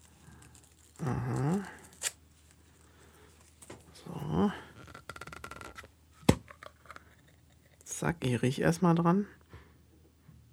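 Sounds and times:
wrapping paper rustling as a package from a Russian supermarket is opened: 0:00.0 - 0:04.0
speech: 0:01.0 - 0:01.8, 0:08.0 - 0:09.4.

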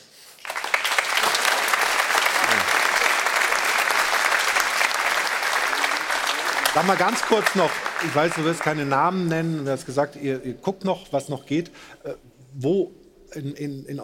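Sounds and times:
audience applause: 0:00.3 - 0:09.2
speech: 0:06.8 - 0:14.0.

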